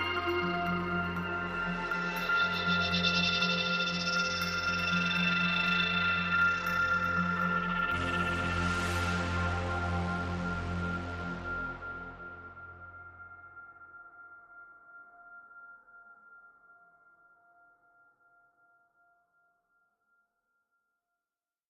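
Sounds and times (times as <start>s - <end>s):
light oratorio drone: 0.0s - 13.9s.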